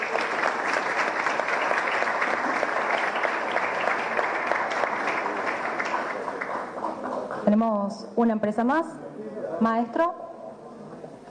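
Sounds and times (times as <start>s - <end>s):
applause: 0.0s - 7.5s
speech: 7.5s - 9.0s, 9.6s - 10.2s.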